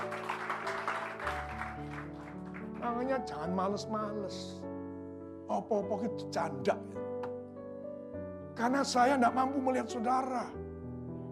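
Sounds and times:
audience applause: 0:00.0 - 0:03.0
speech: 0:02.8 - 0:04.7, 0:05.5 - 0:07.1, 0:08.6 - 0:10.6.

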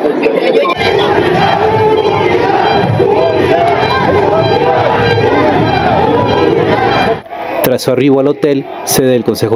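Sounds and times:
supporters shouting for unity and a level field: 0:00.0 - 0:09.4
speech: 0:07.8 - 0:09.5.

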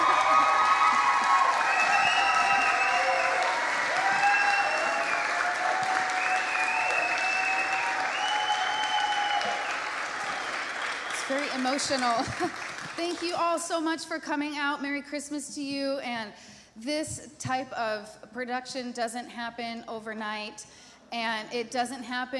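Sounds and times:
round of applause: 0:00.0 - 0:13.4
speech: 0:11.6 - 0:22.3.

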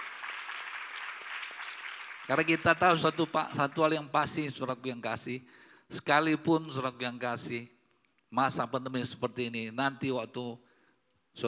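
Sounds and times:
audience applauding: 0:00.0 - 0:04.1
speech: 0:02.3 - 0:10.7.

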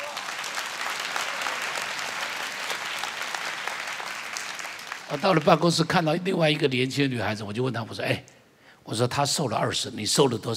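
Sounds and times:
audience applause: 0:00.0 - 0:05.7
speech: 0:05.1 - 0:10.5.

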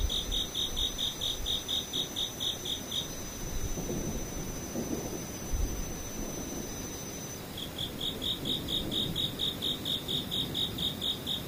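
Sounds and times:
insects chirping in quick bright pulses: 0:00.0 - 0:11.4.

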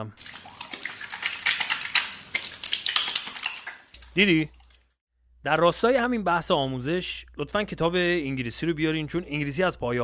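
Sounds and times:
speech: 0:00.0 - 0:00.4, 0:04.2 - 0:04.6, 0:05.4 - 0:10.0
hands being washed under running water: 0:00.0 - 0:05.0.

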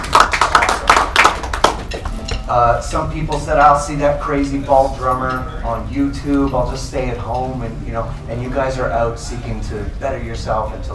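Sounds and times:
audience applause: 0:00.0 - 0:02.2
speech: 0:02.5 - 0:10.9.

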